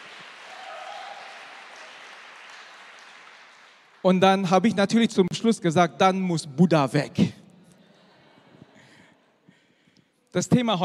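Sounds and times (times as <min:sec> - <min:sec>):
audience applause: 0:00.0 - 0:04.1
speech: 0:04.0 - 0:07.3, 0:10.3 - 0:10.8.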